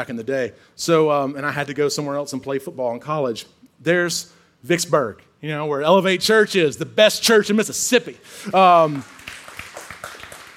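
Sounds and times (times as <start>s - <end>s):
speech: 0.0s - 9.4s
audience cheering and clapping: 8.5s - 10.5s.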